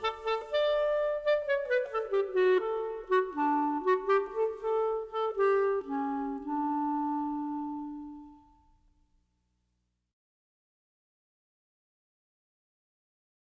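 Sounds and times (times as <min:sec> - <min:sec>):
music: 0:00.0 - 0:09.1.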